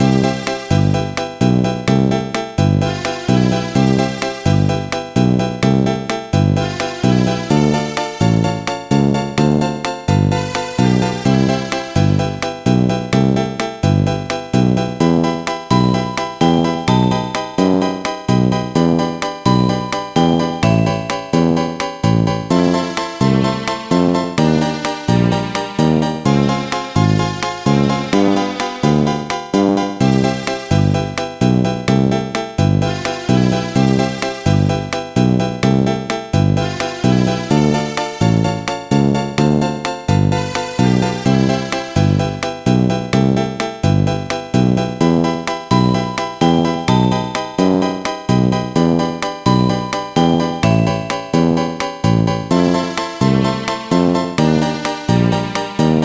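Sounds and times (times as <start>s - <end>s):
elevator music: 0.0s - 56.0s.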